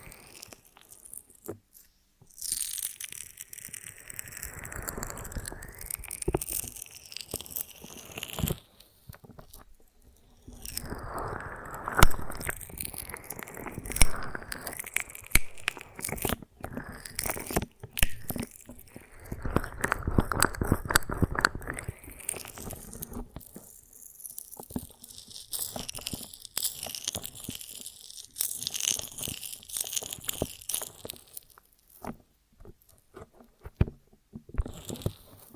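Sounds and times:
honeycomb on a branch being bitten and chewed: 0.0s - 33.4s, 34.6s - 35.5s.

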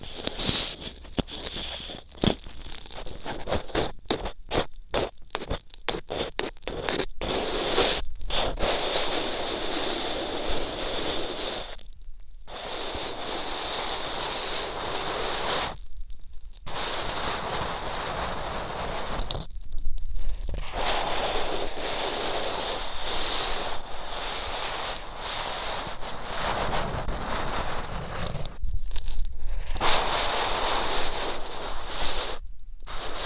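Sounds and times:
rough scratchy rubbing and scraping of ear cleaning: 0.0s - 33.2s.

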